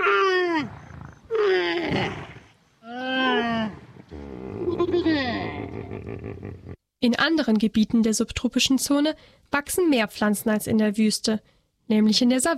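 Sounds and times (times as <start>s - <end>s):
camels at a waterhole: 0.0s - 6.8s
speech: 7.0s - 12.5s.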